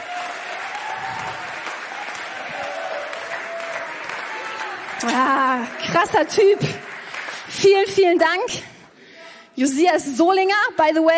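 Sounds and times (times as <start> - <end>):
audience applause: 0.0 - 7.9
speech: 5.0 - 6.9, 7.5 - 8.7, 9.6 - 11.1.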